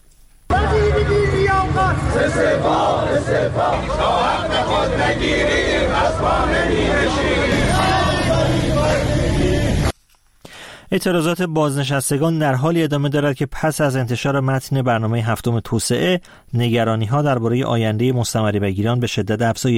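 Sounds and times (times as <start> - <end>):
retired telecom workers chanting slogans at a protest rally in Iran: 0.5 - 9.9
speech: 2.0 - 9.2, 10.9 - 19.7.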